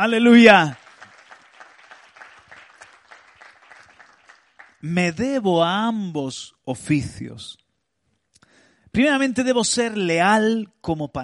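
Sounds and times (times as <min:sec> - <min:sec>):
speech: 0:00.0 - 0:00.8, 0:04.8 - 0:07.6, 0:08.9 - 0:11.2
audience applauding: 0:00.0 - 0:05.1.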